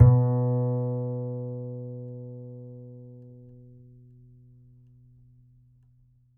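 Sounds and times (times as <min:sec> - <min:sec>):
upright acoustic bass: 0:00.0 - 0:04.0.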